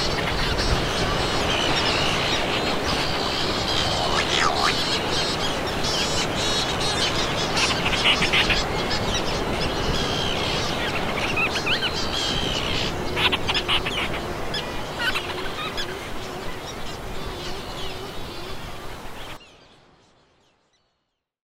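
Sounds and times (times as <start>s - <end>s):
coastal ambience at Ilheu Vila Porto, Santa Maria: 0.0s - 20.0s.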